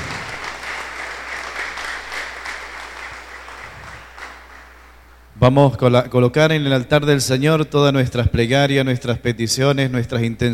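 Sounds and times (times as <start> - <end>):
audience applause: 0.0 - 5.0
speech: 5.4 - 10.5.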